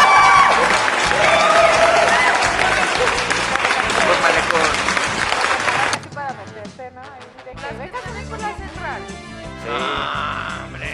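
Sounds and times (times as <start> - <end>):
cheers and whoops: 0.0 - 3.3
crowd applauding: 0.0 - 6.0.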